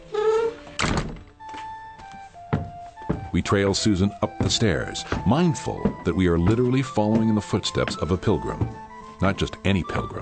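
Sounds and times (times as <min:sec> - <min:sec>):
old wooden door creaking: 0:00.0 - 0:09.3
old wooden door shutting with a heavy thud: 0:00.8 - 0:01.3
speech: 0:03.4 - 0:10.2.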